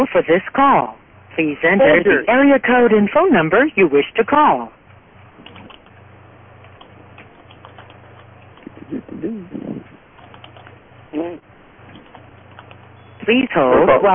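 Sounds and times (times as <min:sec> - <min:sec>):
speech: 0:00.0 - 0:04.8, 0:08.9 - 0:09.6, 0:13.3 - 0:14.1
computer keyboard typing: 0:05.4 - 0:05.9, 0:06.6 - 0:08.7, 0:10.2 - 0:10.8, 0:11.9 - 0:12.9.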